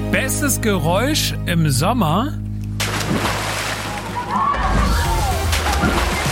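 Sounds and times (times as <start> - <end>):
speech: 0.1 - 2.4
person jumping into cold water splash: 2.8 - 6.2.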